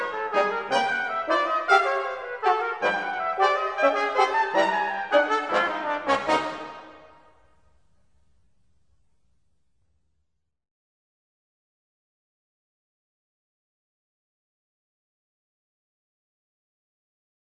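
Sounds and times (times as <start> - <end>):
brass quartet: 0.0 - 7.5.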